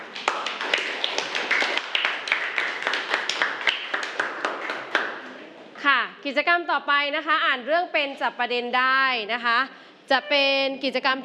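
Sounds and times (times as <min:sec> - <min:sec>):
applause: 0:00.0 - 0:05.4
speech: 0:06.2 - 0:11.2.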